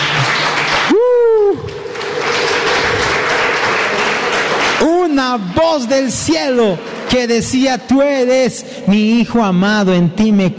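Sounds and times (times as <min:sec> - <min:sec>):
church audience applauding loudly: 0:00.0 - 0:07.3
high-pitched vocal cry or whoop: 0:00.8 - 0:04.2
speech: 0:05.3 - 0:10.5.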